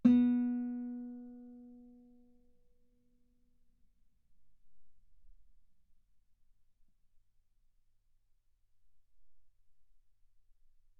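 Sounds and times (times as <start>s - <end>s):
guitar note B3: 0.0s - 1.8s.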